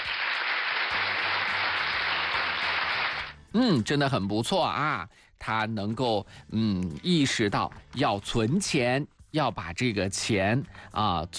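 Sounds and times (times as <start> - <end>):
applause: 0.0 - 3.4
speech: 3.6 - 11.3.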